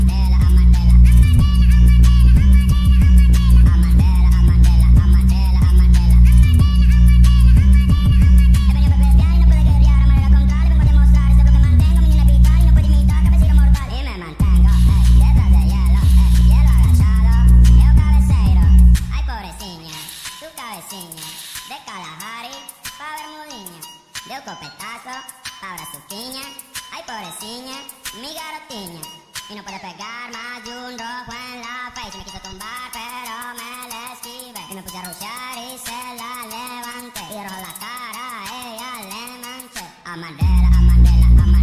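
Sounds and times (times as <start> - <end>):
bass boosted remix music: 0.0 - 21.8, 32.6 - 41.6.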